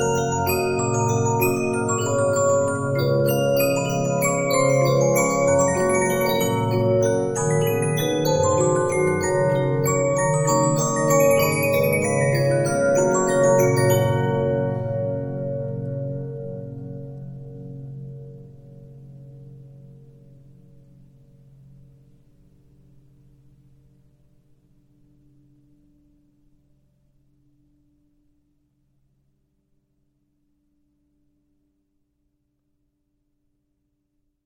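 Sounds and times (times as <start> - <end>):
Regina 15-inch disc music box: 0.0 - 16.0.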